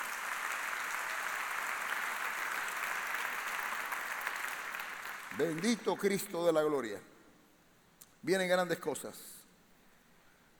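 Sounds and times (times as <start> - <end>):
audience applause: 0.0 - 6.1
speech: 5.4 - 7.1, 8.2 - 9.4.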